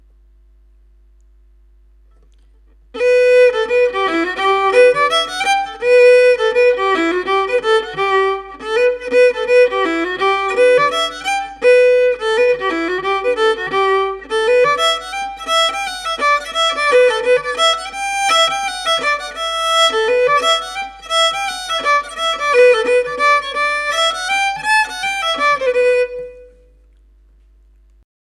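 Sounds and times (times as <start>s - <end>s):
solo fiddle: 3.0s - 26.7s.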